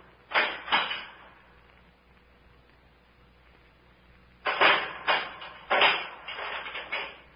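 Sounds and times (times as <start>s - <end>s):
clattering knocks: 0.3s - 1.3s, 4.5s - 7.3s
door being unchained, opened and closed: 0.3s - 1.3s, 4.4s - 7.3s.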